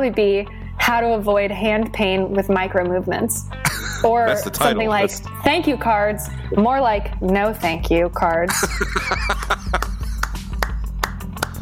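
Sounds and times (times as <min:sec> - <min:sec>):
speech: 0:00.0 - 0:09.6
laughter: 0:03.7 - 0:05.0, 0:08.5 - 0:10.5
hand clapping: 0:08.6 - 0:11.6.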